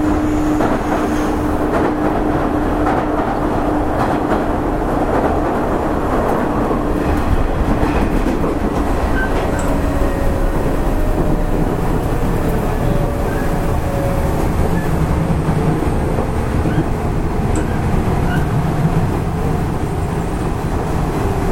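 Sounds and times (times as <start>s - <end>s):
Nishitetsu 5000 series train rumble and rattle: 0.0s - 21.5s
humming tone: 9.1s - 15.0s.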